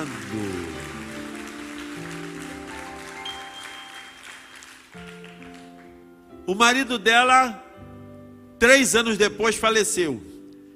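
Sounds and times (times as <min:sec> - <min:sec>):
audience applause: 0:00.0 - 0:06.0
speech: 0:06.5 - 0:07.6, 0:08.6 - 0:10.3.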